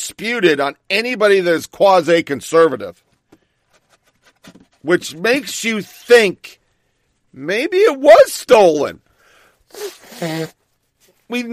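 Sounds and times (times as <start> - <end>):
speech: 0.1 - 3.1, 4.4 - 6.6, 7.3 - 9.0, 9.7 - 10.6, 11.3 - 11.5
person blowing their nose: 9.7 - 10.7.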